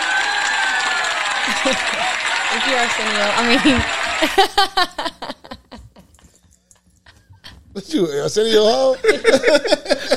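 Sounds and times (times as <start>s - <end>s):
faint cheering: 0.0s - 4.6s
small group applauding to welcome a guest: 0.0s - 4.9s
laughter: 1.4s - 2.3s, 3.4s - 6.1s, 8.5s - 10.1s
speech: 1.6s - 5.4s, 7.8s - 10.1s.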